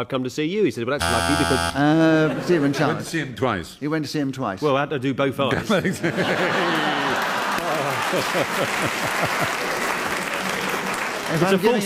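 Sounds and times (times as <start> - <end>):
speech: 0.0 - 6.9, 8.1 - 9.9, 11.3 - 11.8
laughter: 1.9 - 3.2, 5.5 - 9.8
audience applause: 6.2 - 11.8.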